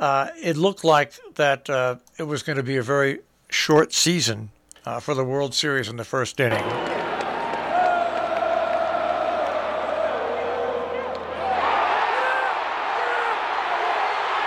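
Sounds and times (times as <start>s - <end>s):
speech: 0.0s - 7.0s
stadium crowd cheering after grand slam: 6.5s - 14.4s.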